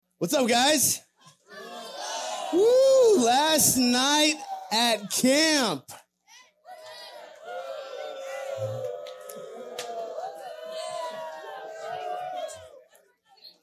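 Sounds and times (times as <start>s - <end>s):
speech: 0.2s - 1.7s, 2.5s - 6.0s
crowd of young voices booing and jeering: 1.4s - 5.6s, 6.6s - 13.0s.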